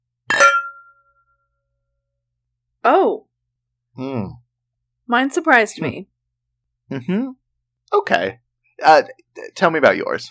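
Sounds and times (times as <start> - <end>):
glasses clinking in a toast: 0.3 - 1.1
speech: 2.9 - 3.3, 4.0 - 4.4, 5.1 - 6.1, 6.9 - 10.2.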